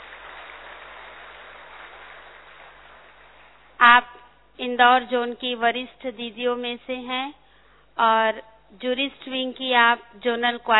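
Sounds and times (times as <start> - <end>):
audience clapping to welcome a speaker at a gathering: 0.0 - 3.8
speech: 3.9 - 7.4, 8.0 - 10.7.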